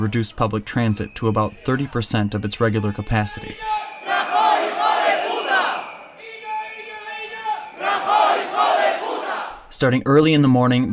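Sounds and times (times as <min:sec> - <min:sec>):
speech: 0:00.0 - 0:03.8, 0:09.8 - 0:10.9
crowd of metro workers chanting: 0:01.3 - 0:02.4, 0:03.6 - 0:09.7.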